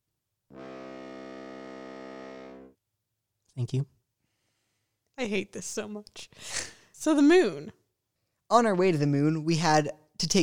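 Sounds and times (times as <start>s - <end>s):
foghorn blast: 0.5s - 2.8s
speech: 3.6s - 4.0s, 5.2s - 7.8s, 8.5s - 10.4s.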